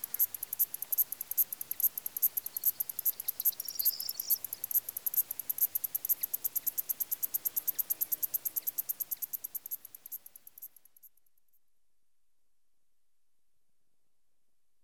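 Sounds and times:
crickets chirping in Greek countryside: 0:00.0 - 0:11.1.

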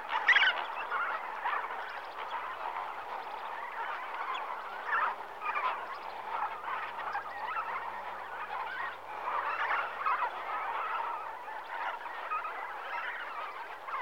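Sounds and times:
flamingo flock honking in the morning at Lake Nakuru Kenya: 0:00.0 - 0:13.9.

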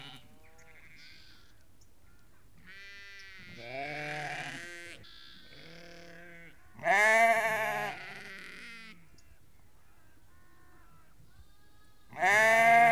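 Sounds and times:
flock of ewes and lambs bleating: 0:00.0 - 0:12.9.

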